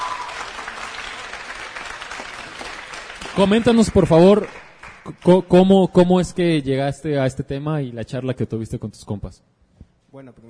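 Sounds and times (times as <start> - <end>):
audience applause: 0.0 - 5.2
speech: 3.4 - 10.4.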